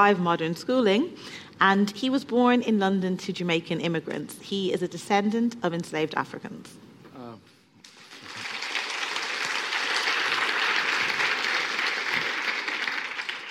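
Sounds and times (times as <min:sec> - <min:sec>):
speech: 0:00.0 - 0:06.8
audience applause: 0:07.9 - 0:13.4.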